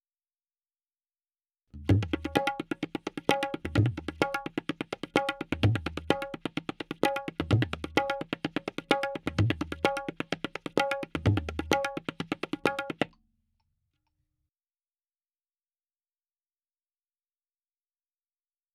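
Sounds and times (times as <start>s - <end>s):
tabla rhythm in C: 1.8s - 13.1s.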